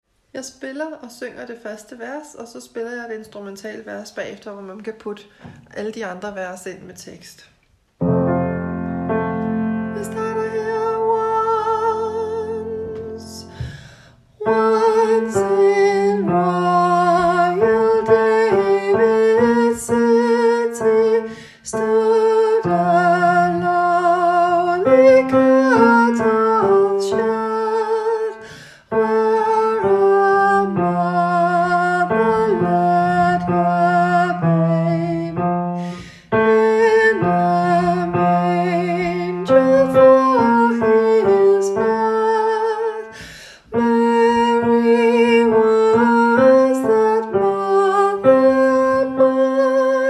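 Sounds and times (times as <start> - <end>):
tenor singing: 9.1 - 13.6, 14.4 - 35.7, 36.3 - 50.0.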